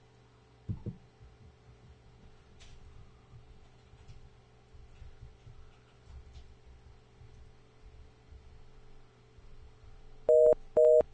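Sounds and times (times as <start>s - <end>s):
faint low hum: 0.0s - 11.1s
telephone busy tone: 10.3s - 11.0s.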